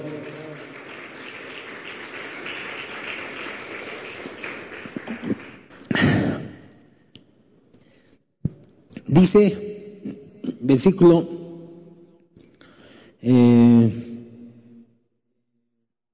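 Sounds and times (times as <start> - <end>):
audience applause: 0.0 - 6.4
speech: 9.1 - 9.7, 10.7 - 11.4.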